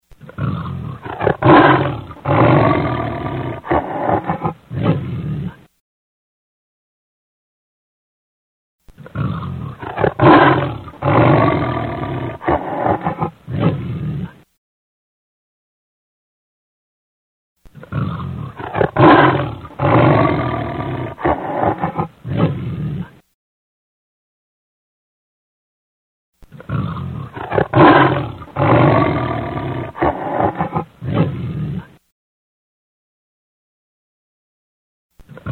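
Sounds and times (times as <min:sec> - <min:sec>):
lion roaring: 0:00.2 - 0:05.7, 0:09.0 - 0:14.4, 0:17.8 - 0:23.2, 0:26.5 - 0:32.0.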